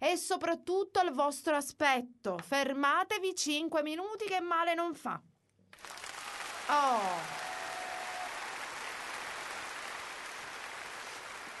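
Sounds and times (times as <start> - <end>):
speech: 0.1 - 6.1, 6.7 - 7.6
crowd clapping: 5.8 - 11.5.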